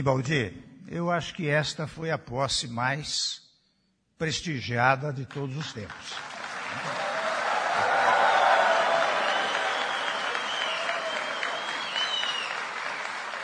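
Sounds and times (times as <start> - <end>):
speech: 0.0 - 3.4, 4.2 - 7.1
crowd applauding: 5.6 - 13.4
faint voices and cheers: 6.7 - 12.6.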